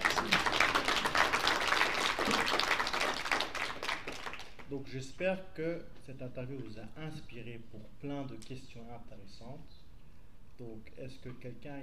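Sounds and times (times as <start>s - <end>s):
audience applause: 0.0s - 4.6s
speech: 4.7s - 9.8s, 10.6s - 11.8s.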